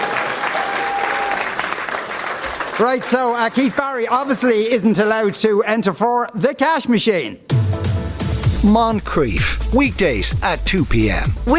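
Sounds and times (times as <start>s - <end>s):
studio audience applause: 0.0s - 5.2s
speech: 2.8s - 7.5s, 8.6s - 11.5s.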